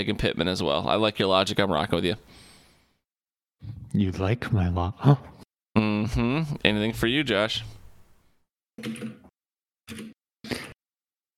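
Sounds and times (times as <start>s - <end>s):
speech: 0.0s - 2.5s, 3.6s - 7.8s, 8.8s - 9.2s, 9.9s - 10.6s
mechanical keyboard typing: 8.8s - 9.2s.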